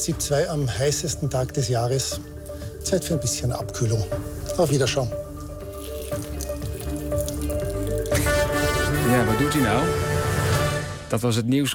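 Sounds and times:
speech: 0.0s - 5.2s, 9.1s - 10.1s, 11.1s - 11.7s
bottle of water poured over a person in a suit: 5.6s - 8.6s.

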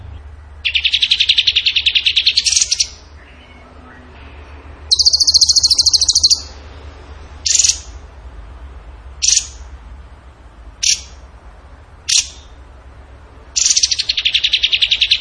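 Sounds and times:
bird rattling trill: 0.6s - 3.0s, 4.9s - 6.6s, 7.4s - 8.0s, 9.2s - 9.6s, 10.8s - 11.2s, 12.1s - 12.5s, 13.6s - 15.1s.

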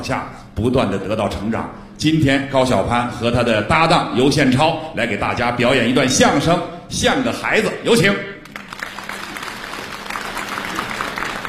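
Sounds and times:
speech: 0.0s - 8.3s
audience applause: 8.4s - 11.4s.

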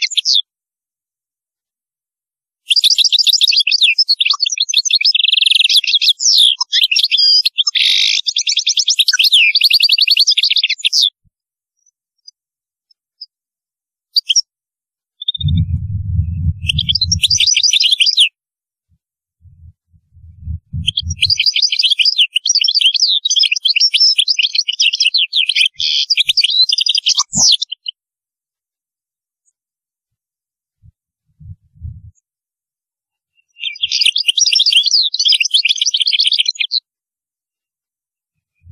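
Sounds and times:
European goldfinch song: 0.0s - 0.5s, 2.7s - 11.1s, 14.2s - 14.4s, 15.2s - 18.3s, 20.2s - 28.0s, 33.3s - 36.8s.

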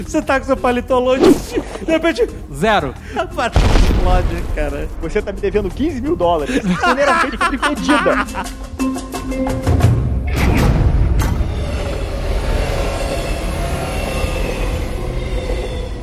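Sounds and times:
speech: 0.0s - 9.8s
laughter: 6.3s - 8.7s
train rumbling along the rails: 10.6s - 16.0s
thin metallic squeal of a train: 11.4s - 16.0s.

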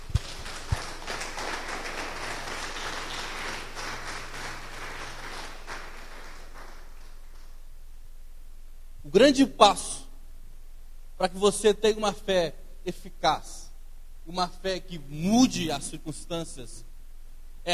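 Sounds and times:
church congregation applauding during a sermon: 0.0s - 7.6s
speech: 9.2s - 9.9s, 11.2s - 13.6s, 14.3s - 16.9s.

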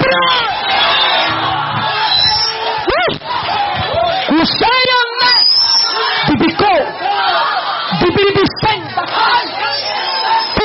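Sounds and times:
audience shouting praise at a night worship service: 0.0s - 10.6s
people whooping: 0.1s - 4.5s, 5.2s - 6.2s, 9.2s - 10.6s.

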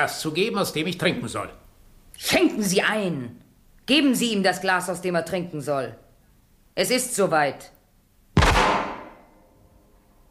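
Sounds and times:
speech: 0.0s - 1.6s, 2.2s - 6.0s, 6.8s - 7.8s
gunshot: 8.4s - 9.3s.

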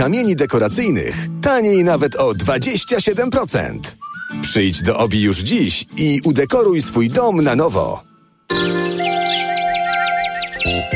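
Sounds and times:
speech: 0.0s - 8.8s
sparrows chirping: 4.0s - 10.9s
steady musical backing with sustained tones: 8.2s - 10.9s.

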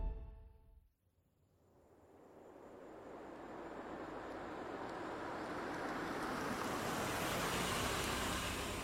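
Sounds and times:
car pulling up at the entrance of a hall: 3.1s - 8.8s.

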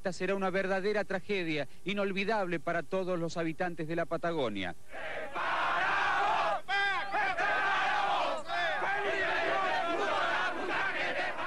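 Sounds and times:
speech: 0.0s - 5.4s
protesting crowd shouting in the street: 4.9s - 11.4s.

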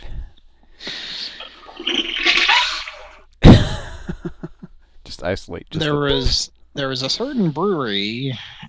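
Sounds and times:
toilet flushing: 1.6s - 3.2s
speech: 5.2s - 8.5s.

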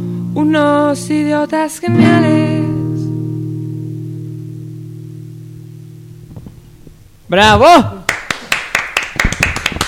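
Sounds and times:
speech: 0.4s - 2.6s, 7.3s - 8.0s
rhythmic hand clapping: 8.1s - 9.8s.

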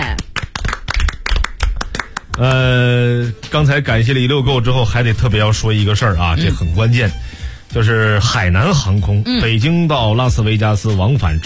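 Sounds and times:
studio applause: 0.0s - 2.9s
speech: 2.4s - 11.4s.

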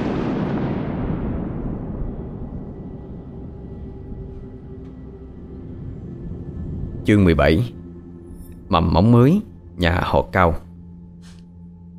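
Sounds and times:
rumbling thunder: 0.0s - 7.1s
speech: 7.1s - 7.8s, 8.7s - 10.6s.

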